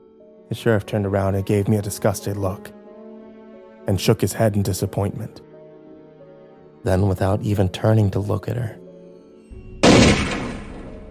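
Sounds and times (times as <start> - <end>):
speech: 0.5 - 2.8, 3.9 - 5.5, 6.8 - 8.8
gunshot fired by a sheriff outdoors in the snow: 9.8 - 11.0.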